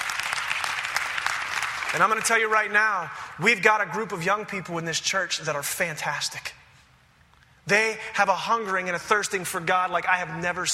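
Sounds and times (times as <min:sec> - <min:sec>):
audience applauding: 0:00.0 - 0:02.7
speech: 0:01.9 - 0:06.6, 0:07.7 - 0:10.7.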